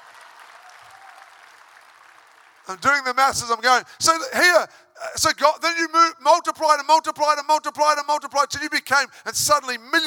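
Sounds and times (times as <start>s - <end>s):
faint audience applause during a lively talk: 0.0s - 2.8s
speech: 2.6s - 10.0s.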